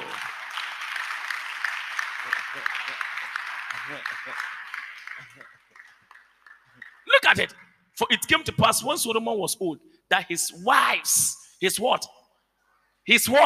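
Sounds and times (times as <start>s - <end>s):
audience clapping: 0.0s - 7.8s
speech: 3.8s - 4.6s, 7.3s - 12.2s, 13.1s - 13.4s.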